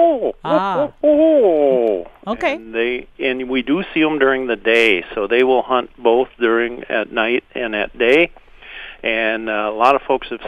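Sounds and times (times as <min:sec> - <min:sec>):
person imitating a barred owl call: 0:00.0 - 0:02.1
speech: 0:00.0 - 0:08.4, 0:09.0 - 0:10.4.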